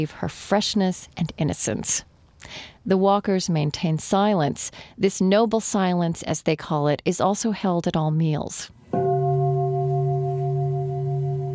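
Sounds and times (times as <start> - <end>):
speech: 0.0 - 9.0
mindfulness bell ringing in a dining room: 8.8 - 11.5.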